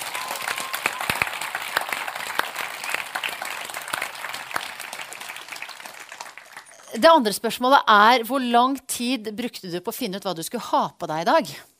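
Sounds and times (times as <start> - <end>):
crowd applauding: 0.0 - 6.9
speech: 7.0 - 11.7.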